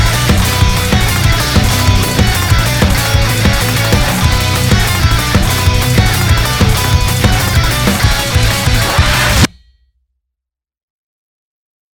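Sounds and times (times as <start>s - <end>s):
rock music: 0.0s - 9.5s.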